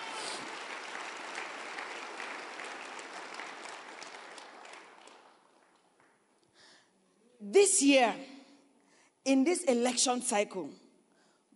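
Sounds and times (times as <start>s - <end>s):
audience clapping: 0.0s - 6.6s
speech: 7.4s - 8.3s, 9.3s - 10.8s.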